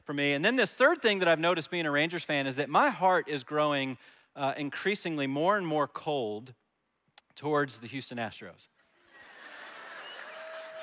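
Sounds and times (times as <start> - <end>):
speech: 0.1 - 6.6, 7.4 - 8.8
audience clapping: 9.2 - 10.8.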